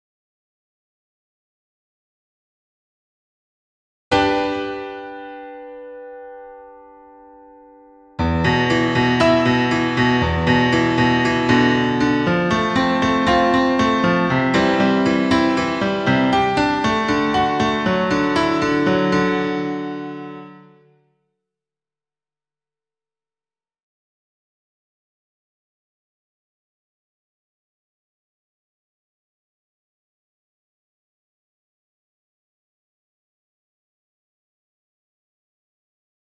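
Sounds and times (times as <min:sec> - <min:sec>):
piano: 0:04.1 - 0:21.2.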